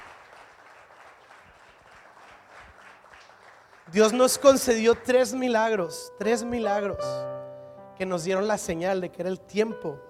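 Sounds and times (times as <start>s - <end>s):
audience applause: 0.0s - 5.2s
speech: 3.9s - 7.4s, 8.0s - 10.0s.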